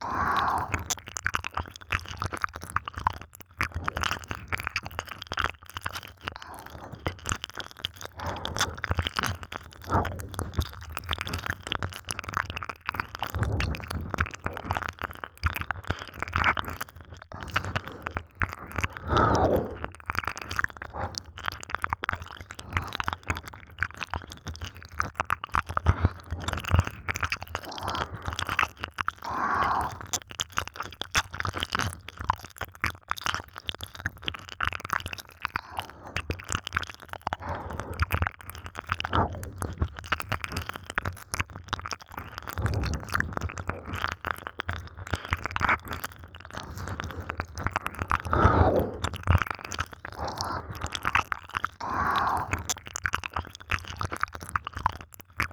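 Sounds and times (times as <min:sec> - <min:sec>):
ear licking: 0:00.0 - 0:55.5.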